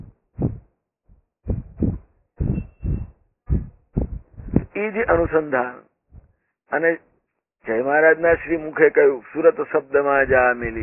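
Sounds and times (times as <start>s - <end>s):
heartbeat: 0.0s - 5.4s, 6.1s - 6.4s, 8.3s - 8.6s, 10.2s - 10.8s
speech: 4.8s - 5.9s, 6.7s - 10.8s.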